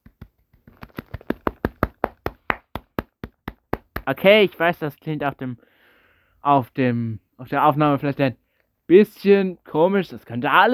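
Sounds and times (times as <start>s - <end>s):
hand clapping: 0.0s - 4.2s
speech: 4.1s - 5.7s, 6.4s - 10.7s.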